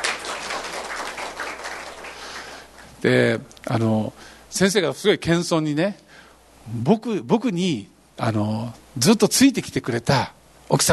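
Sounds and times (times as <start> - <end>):
welcoming audience applause: 0.0 - 2.7
speech: 3.0 - 6.0, 6.6 - 10.9.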